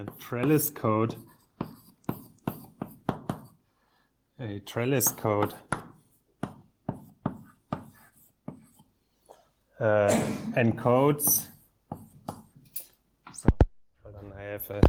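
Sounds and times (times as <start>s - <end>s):
speech: 0.0s - 1.3s, 4.4s - 5.7s, 9.8s - 11.5s, 14.6s - 14.8s
chalk or pen tapping and scratching on a board while writing a formula: 0.0s - 3.7s, 4.9s - 9.5s, 10.9s - 13.4s.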